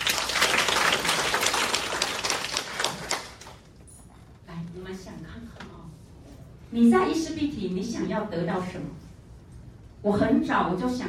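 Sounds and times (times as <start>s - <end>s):
applause: 0.0s - 3.7s
speech: 6.8s - 9.0s, 10.0s - 11.0s.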